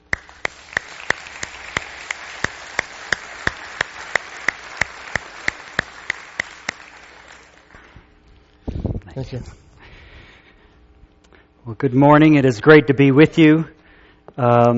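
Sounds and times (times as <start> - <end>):
audience applause welcoming a guest speaker to the platform: 0.0 - 8.0
speech: 9.2 - 9.6, 11.7 - 13.8, 14.4 - 14.7.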